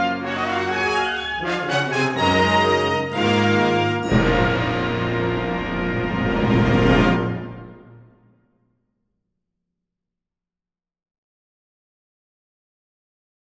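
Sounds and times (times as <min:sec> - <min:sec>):
ecstatic fanfare: 0:00.2 - 0:07.8.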